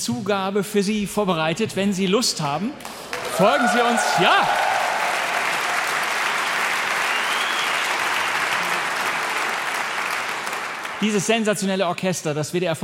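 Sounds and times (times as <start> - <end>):
speech: 0.0 - 4.7, 11.0 - 12.8
audience applause after an orchestra concert: 2.9 - 11.5.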